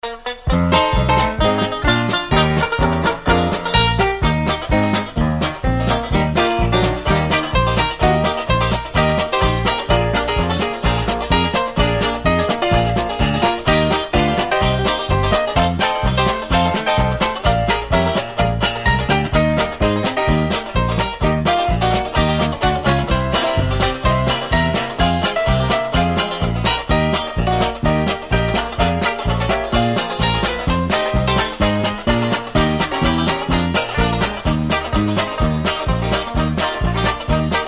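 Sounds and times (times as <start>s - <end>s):
music: 0.0s - 37.6s.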